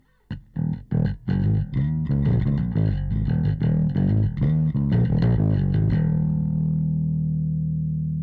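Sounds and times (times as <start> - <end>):
bass: 0.0 - 8.2.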